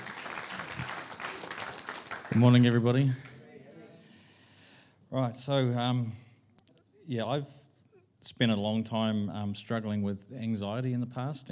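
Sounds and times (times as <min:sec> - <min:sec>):
audience golf clap: 0:00.0 - 0:03.4
speech: 0:02.3 - 0:03.3, 0:05.1 - 0:06.2, 0:07.1 - 0:11.5.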